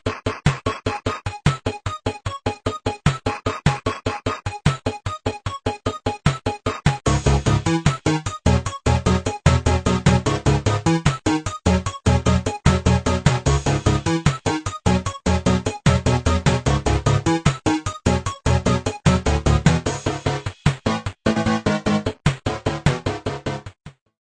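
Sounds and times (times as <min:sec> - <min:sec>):
8-bit intro music: 0:00.1 - 0:23.8.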